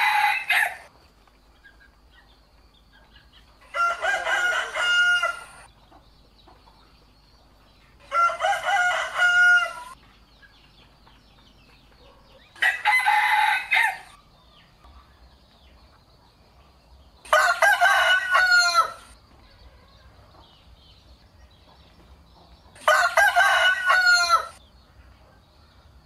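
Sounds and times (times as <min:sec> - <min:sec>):
rooster crowing: 0:00.0 - 0:00.9, 0:03.6 - 0:05.7, 0:08.1 - 0:10.0, 0:12.6 - 0:14.2, 0:17.3 - 0:19.2, 0:22.8 - 0:24.6.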